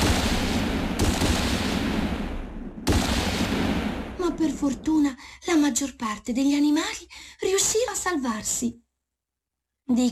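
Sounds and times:
gunfire: 0.0 - 4.6
speech: 4.4 - 8.8, 9.9 - 10.1.

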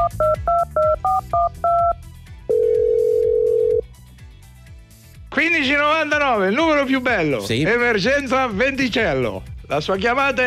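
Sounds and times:
touch-tone telephone dialing of a heat emergency hotline number: 0.0 - 3.8
telephone ringing tone: 2.5 - 3.8
speech: 5.6 - 10.4.

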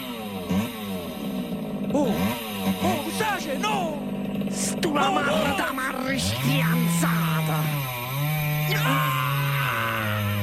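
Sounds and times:
chainsaw engine running: 0.0 - 10.4
speech: 4.6 - 7.9, 8.7 - 9.2.

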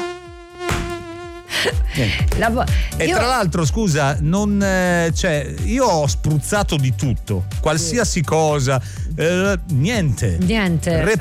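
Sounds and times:
tiger mosquito buzzing in a thin whine: 0.0 - 2.3
speech: 1.6 - 11.2.

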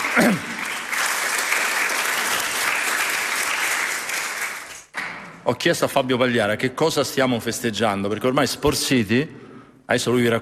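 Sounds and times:
audience applause: 0.0 - 4.9
speech: 0.2 - 0.5, 5.5 - 10.4.

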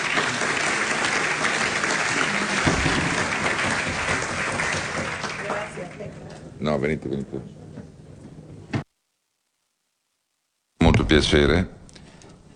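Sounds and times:
audience applause: 0.0 - 6.3
speech: 6.6 - 7.6, 11.1 - 11.8.

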